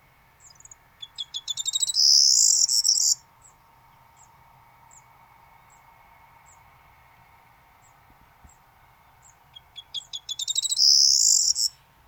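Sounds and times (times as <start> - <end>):
corn bunting singing: 0.4 - 6.7, 7.8 - 11.8.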